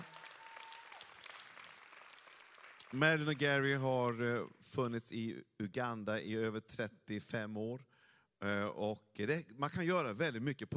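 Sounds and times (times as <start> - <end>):
warm audience applause: 0.0 - 3.8
speech: 2.9 - 10.7.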